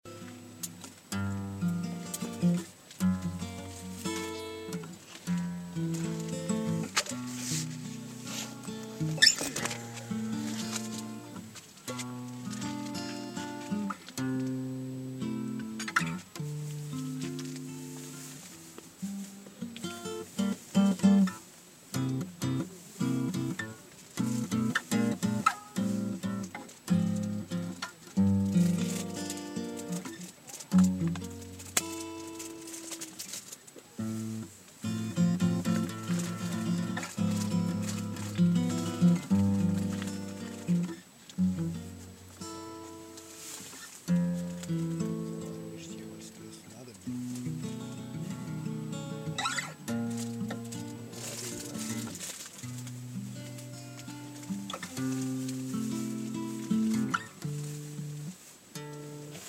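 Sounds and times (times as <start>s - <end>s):
guitar: 0.0s - 59.4s.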